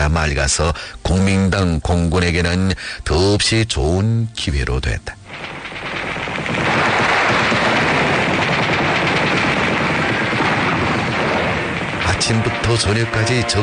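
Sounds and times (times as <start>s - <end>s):
speech: 0.0s - 5.9s, 12.2s - 13.6s
machine gun fire: 5.3s - 13.6s.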